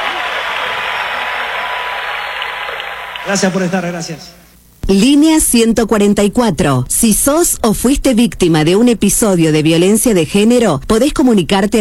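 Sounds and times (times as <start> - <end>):
loud applause: 0.0 - 4.2
speech: 3.3 - 11.7.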